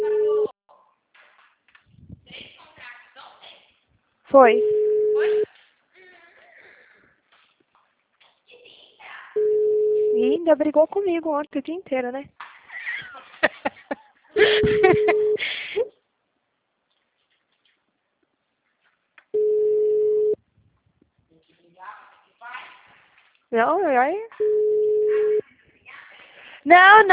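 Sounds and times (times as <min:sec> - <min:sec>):
telephone busy signal: 0:00.0 - 0:00.5, 0:04.4 - 0:05.4, 0:09.4 - 0:10.4, 0:14.5 - 0:15.4, 0:19.4 - 0:20.4, 0:24.4 - 0:25.4
speech: 0:04.3 - 0:05.4, 0:10.5 - 0:12.4, 0:14.4 - 0:15.2, 0:23.5 - 0:24.6, 0:26.6 - 0:27.1
laughter: 0:12.7 - 0:15.8.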